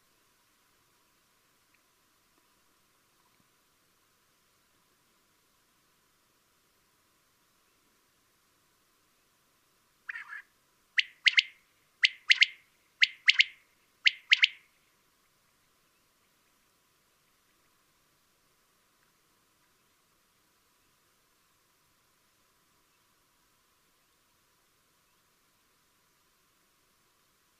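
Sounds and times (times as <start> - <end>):
common quail calling a three-note phrase: 10.1 - 14.6.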